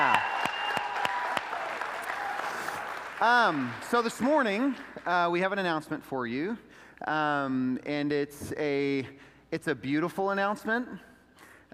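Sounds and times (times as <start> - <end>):
audience hand clapping: 0.0 - 5.4
speech: 3.2 - 11.1.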